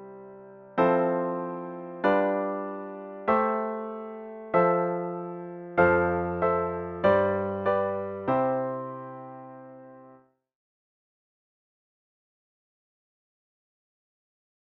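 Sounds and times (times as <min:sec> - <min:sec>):
piano: 0:00.0 - 0:10.4.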